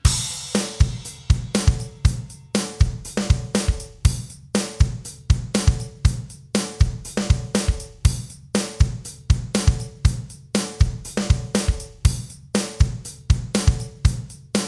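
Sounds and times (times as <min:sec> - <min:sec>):
drum loop at 120 BPM: 0:00.0 - 0:14.6.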